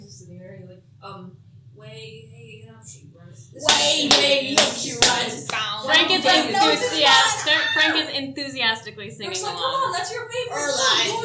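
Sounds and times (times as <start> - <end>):
speech: 0.4 - 11.2
hands clapping along: 3.6 - 5.8.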